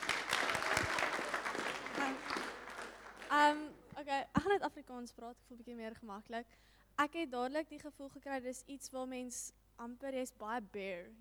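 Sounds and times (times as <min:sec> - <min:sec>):
audience round of applause: 0:00.0 - 0:03.4
speech: 0:03.3 - 0:11.1.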